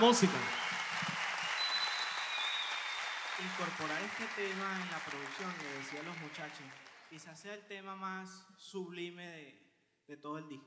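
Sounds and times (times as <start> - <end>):
speech: 0.0 - 0.6, 3.4 - 10.6
loud applause: 0.0 - 7.3.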